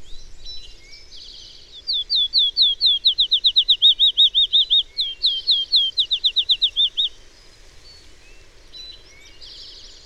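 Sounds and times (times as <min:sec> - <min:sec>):
bird singing fast slurred whistles: 0:01.9 - 0:07.1.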